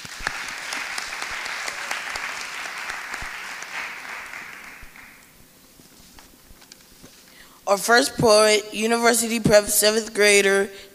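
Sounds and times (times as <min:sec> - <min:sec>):
audience applause: 0:00.0 - 0:05.4
speech: 0:07.7 - 0:10.9.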